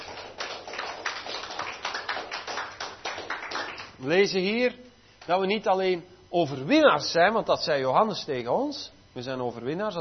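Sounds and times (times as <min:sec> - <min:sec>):
crowd clapping: 0:00.0 - 0:04.0
speech: 0:04.0 - 0:09.9.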